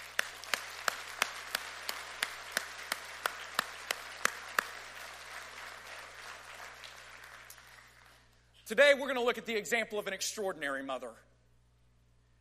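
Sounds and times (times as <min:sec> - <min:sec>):
audience applause: 0:00.0 - 0:08.3
speech: 0:08.7 - 0:11.3.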